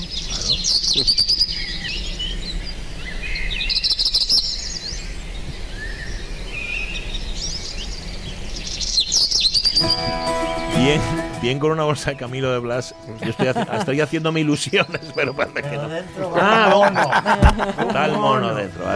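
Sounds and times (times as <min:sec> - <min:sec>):
small birds chirping: 0:00.0 - 0:18.9
speech: 0:01.0 - 0:01.4, 0:10.9 - 0:18.9
laughter: 0:13.0 - 0:18.9.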